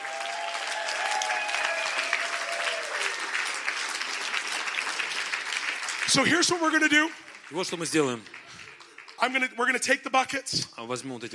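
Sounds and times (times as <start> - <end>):
faint cheers or whistles: 0.0 - 3.3
audience clapping in praise: 0.0 - 10.4
speech: 6.1 - 8.4, 9.2 - 11.3.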